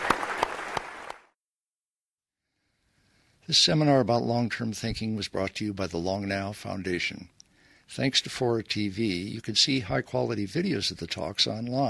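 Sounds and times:
audience applause for the panel: 0:00.0 - 0:01.3
speech: 0:03.5 - 0:11.8.

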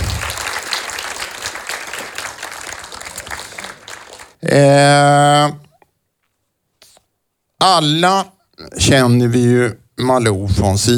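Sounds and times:
audience applause: 0:00.0 - 0:04.4
speech: 0:04.5 - 0:05.6, 0:07.6 - 0:10.9.

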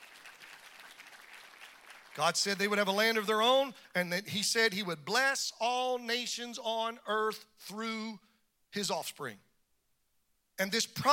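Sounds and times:
audience clapping: 0:00.0 - 0:02.8
speech: 0:02.2 - 0:09.5, 0:10.6 - 0:11.1.

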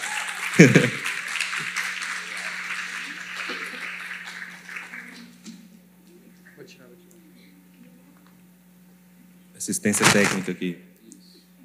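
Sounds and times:
applause for guests: 0:00.0 - 0:05.5
laughter: 0:00.5 - 0:05.7
speech: 0:00.6 - 0:01.1, 0:09.8 - 0:11.0.

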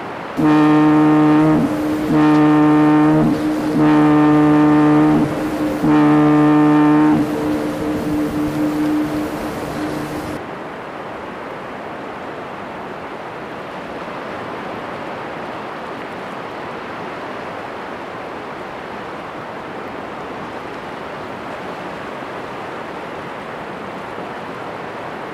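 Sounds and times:
wash of the North Sea at night: 0:00.0 - 0:25.3
deep horn blasts over the North Sea at night: 0:00.4 - 0:10.4.

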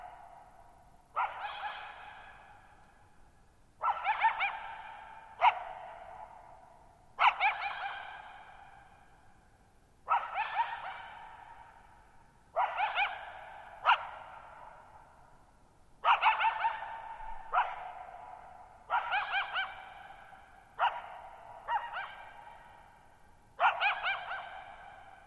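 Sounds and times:
coyote barking: 0:01.1 - 0:02.7, 0:03.8 - 0:06.6, 0:07.2 - 0:09.0, 0:10.0 - 0:11.9, 0:12.5 - 0:15.1, 0:16.0 - 0:23.0, 0:23.6 - 0:25.2.

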